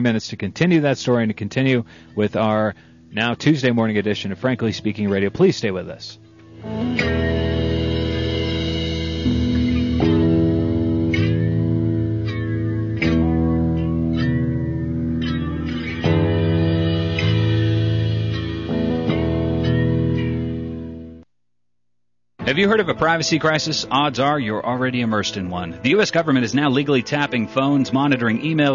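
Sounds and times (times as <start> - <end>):
speech: 0.0 - 7.3, 22.6 - 28.7
break music playing: 4.1 - 21.2, 22.4 - 28.7.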